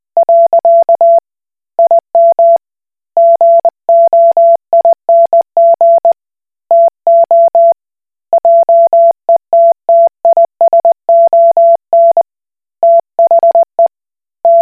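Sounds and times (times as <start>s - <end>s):
Koch Morse code beeps: 0.2s - 1.2s, 3.2s - 7.8s, 8.4s - 12.2s, 12.8s - 13.9s, 14.5s - 14.6s.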